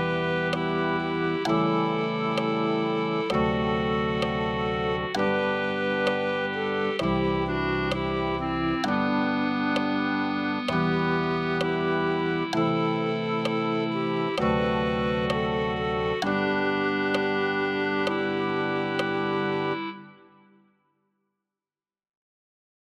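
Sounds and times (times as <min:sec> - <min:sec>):
clarinet melody: 0:00.0 - 0:20.5.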